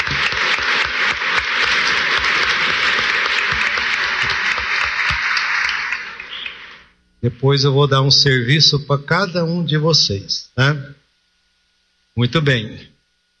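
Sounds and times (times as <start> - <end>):
round of applause: 0.0 - 6.9
speech: 7.2 - 11.0, 12.2 - 12.9.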